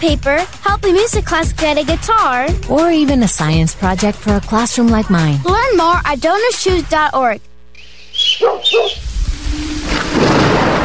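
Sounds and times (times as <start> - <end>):
speech: 0.0 - 7.5, 8.3 - 10.8
rain: 9.0 - 10.8
thunder: 9.0 - 10.8.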